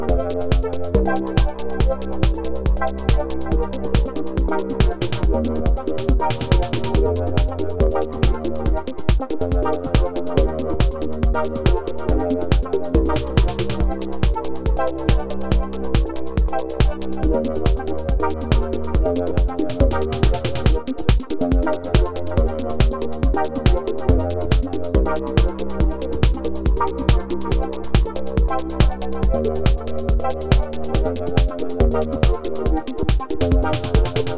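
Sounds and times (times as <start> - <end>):
dubby dubstep music: 0.1 - 34.3.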